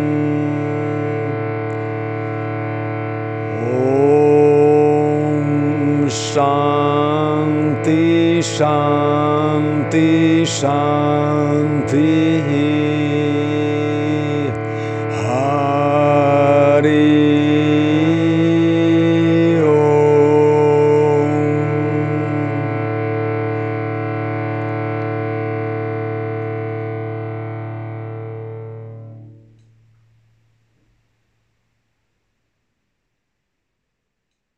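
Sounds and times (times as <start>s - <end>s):
chanting mantras: 0.0s - 26.8s.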